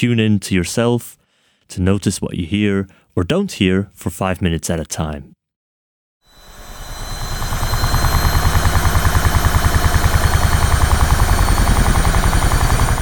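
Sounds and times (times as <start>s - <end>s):
speech: 0.0s - 5.4s
washing machine running loudly: 6.4s - 13.0s.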